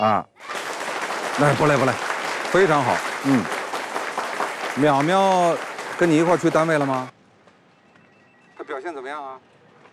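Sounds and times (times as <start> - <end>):
voices calling out: 0.0 - 7.1
studio audience applause: 0.4 - 7.1.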